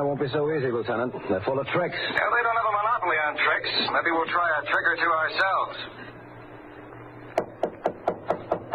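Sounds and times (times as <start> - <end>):
speech: 0.1 - 6.0
knocking on a wooden door: 7.4 - 8.7.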